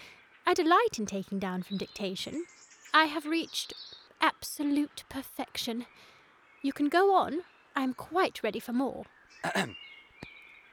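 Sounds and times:
speech: 0.5 - 9.9
man coughing: 9.4 - 9.8.

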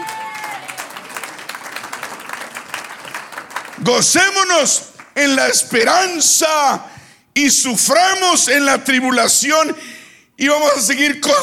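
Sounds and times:
audience applause: 0.0 - 5.2
speech: 3.8 - 11.4.

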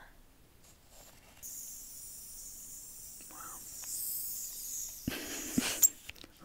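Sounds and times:
spray mister hissing: 1.4 - 6.1.

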